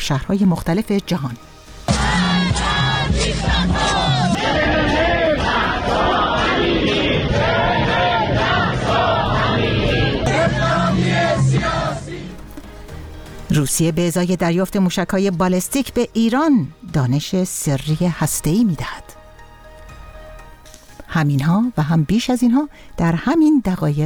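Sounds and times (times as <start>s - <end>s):
speech: 0.1s - 1.5s, 13.6s - 19.1s, 21.2s - 24.0s
protest crowd chanting slogans: 1.9s - 12.4s.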